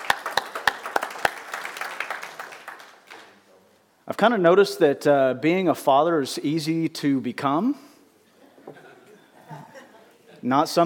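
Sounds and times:
audience applause: 0:00.0 - 0:03.4
speech: 0:04.2 - 0:07.9, 0:10.4 - 0:10.8
laughter: 0:08.4 - 0:10.5.

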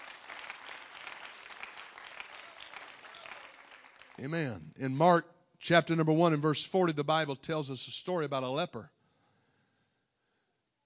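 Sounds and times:
audience clapping hands: 0:00.0 - 0:04.6
speech: 0:04.2 - 0:09.0.

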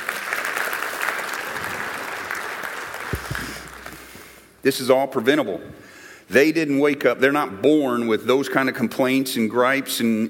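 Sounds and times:
audience applause: 0:00.0 - 0:04.4
speech: 0:04.6 - 0:10.2.

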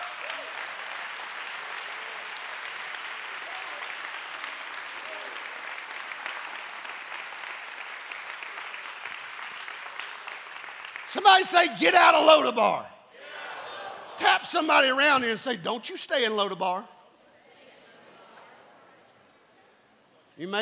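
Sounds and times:
audience applause: 0:00.0 - 0:12.4
speech: 0:11.1 - 0:12.9, 0:14.2 - 0:16.9, 0:20.4 - 0:20.6.

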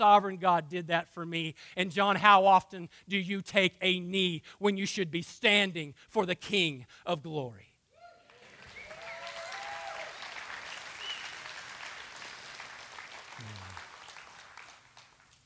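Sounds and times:
speech: 0:00.0 - 0:07.7
audience clapping: 0:08.2 - 0:15.4.

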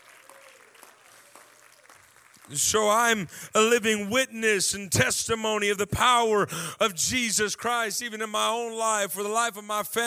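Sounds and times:
audience clapping hands: 0:00.0 - 0:03.8
speech: 0:02.5 - 0:10.0.

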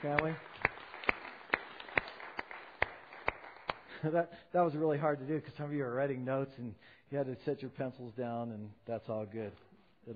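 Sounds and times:
speech: 0:00.0 - 0:00.5, 0:04.0 - 0:10.1
audience applauding: 0:00.0 - 0:04.0.

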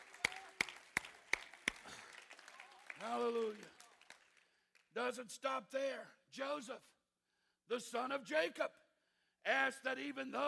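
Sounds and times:
audience clapping hands in unison: 0:00.0 - 0:05.0
speech: 0:03.0 - 0:03.8, 0:05.0 - 0:06.9, 0:07.7 - 0:08.8, 0:09.4 - 0:10.4.

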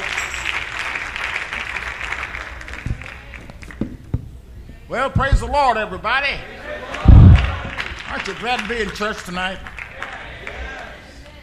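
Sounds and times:
large crowd clapping: 0:00.0 - 0:03.8, 0:06.8 - 0:11.4
speech: 0:04.9 - 0:07.0, 0:08.1 - 0:09.7.

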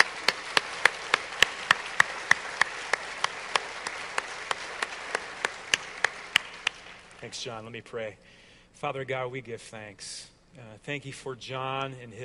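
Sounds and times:
audience clapping: 0:00.0 - 0:07.4
speech: 0:07.2 - 0:12.2.

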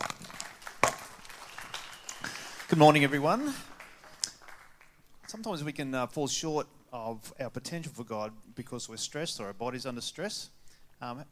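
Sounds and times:
audience clapping: 0:00.0 - 0:05.7
speech: 0:02.7 - 0:03.7, 0:05.3 - 0:11.3.

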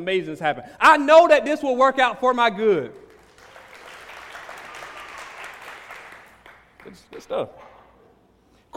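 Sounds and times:
speech: 0:00.0 - 0:03.0, 0:06.8 - 0:07.7
hands clapping: 0:03.0 - 0:07.8.

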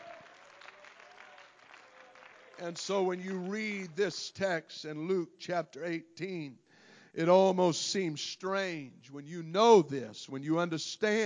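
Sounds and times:
audience clapping hands in praise: 0:00.0 - 0:04.3
speech: 0:02.6 - 0:11.2.

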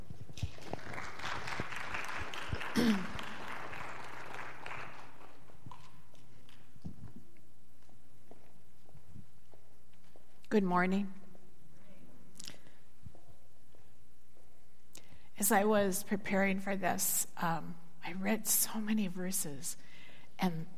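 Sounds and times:
congregation applause welcoming a speaker: 0:00.4 - 0:05.8
speech: 0:02.8 - 0:03.1, 0:10.5 - 0:11.2, 0:15.4 - 0:20.7.

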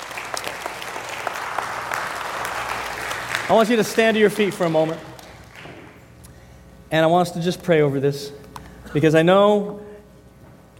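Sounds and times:
church congregation applause: 0:00.0 - 0:06.0
speech: 0:03.5 - 0:05.1, 0:06.9 - 0:09.8.

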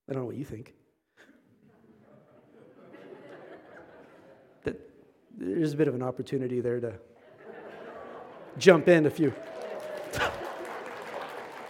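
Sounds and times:
speech: 0:00.1 - 0:00.9, 0:04.6 - 0:07.1, 0:08.6 - 0:10.4
laughter: 0:01.4 - 0:04.6, 0:07.2 - 0:11.6
a few people clapping half-heartedly: 0:09.3 - 0:11.6.

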